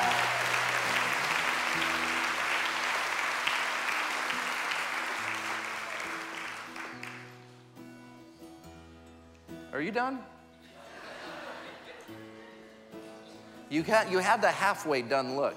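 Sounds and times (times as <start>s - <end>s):
scattered shouts and cheers: 0.0s - 1.9s
audience applause: 0.0s - 7.4s
speech: 9.8s - 10.3s, 13.7s - 15.5s
laughter: 10.6s - 13.6s.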